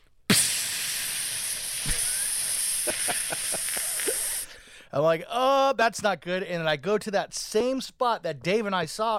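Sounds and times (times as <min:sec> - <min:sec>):
voice imitating air hissing from a tire: 0:00.3 - 0:04.5
speech: 0:05.0 - 0:09.1.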